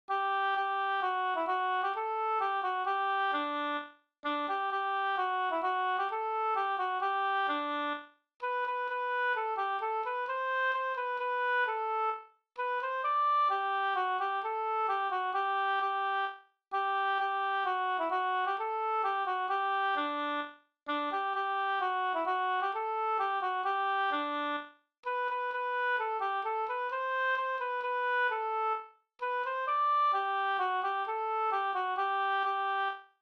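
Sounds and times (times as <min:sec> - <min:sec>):
folk song melody: 0:00.1 - 0:33.0.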